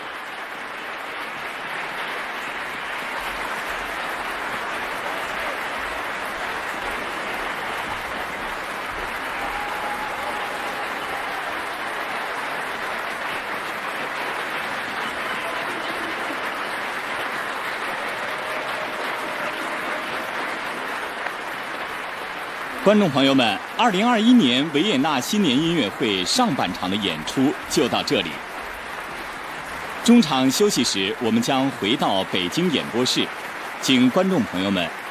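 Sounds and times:
applause from fans worldwide: 0.0s - 35.0s
speech: 22.9s - 28.5s, 30.1s - 35.0s.

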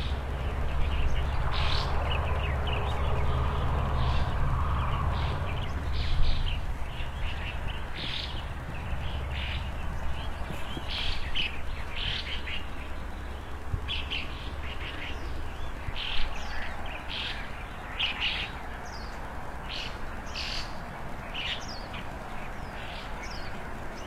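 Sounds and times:
birds chirping: 0.0s - 24.0s
low steady rumble: 0.0s - 24.0s.

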